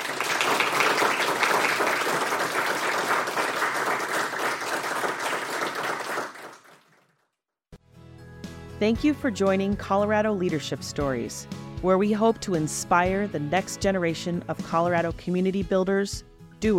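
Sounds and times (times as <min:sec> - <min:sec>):
crowd applause: 0:00.0 - 0:07.1
speech: 0:08.8 - 0:16.7.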